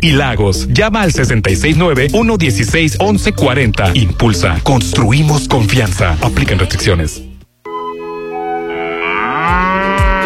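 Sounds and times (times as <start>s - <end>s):
speech: 0.0s - 7.3s
cow mooing: 8.6s - 10.2s.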